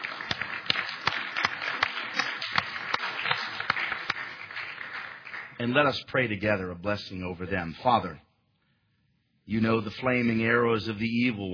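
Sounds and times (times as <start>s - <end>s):
church audience applauding: 0.0s - 5.9s
speech: 5.6s - 8.3s, 9.5s - 11.5s.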